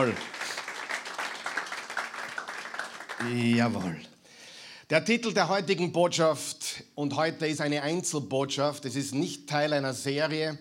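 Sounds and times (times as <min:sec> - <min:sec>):
speech: 0:00.0 - 0:00.4, 0:03.2 - 0:04.1, 0:04.9 - 0:10.5
audience applause: 0:00.0 - 0:04.0.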